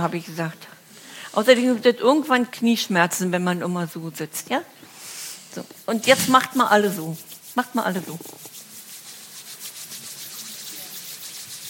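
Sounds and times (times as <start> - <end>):
speech: 0.0 - 4.9, 5.5 - 8.4
hands being rubbed together: 4.9 - 11.6.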